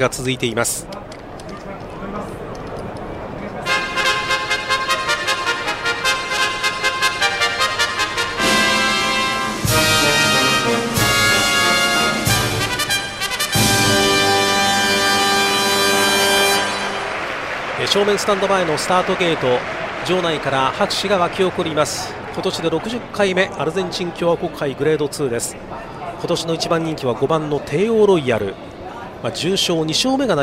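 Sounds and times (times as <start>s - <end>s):
speech: 0.0s - 1.0s, 17.9s - 30.4s
racecourse starting fanfare: 3.6s - 17.8s.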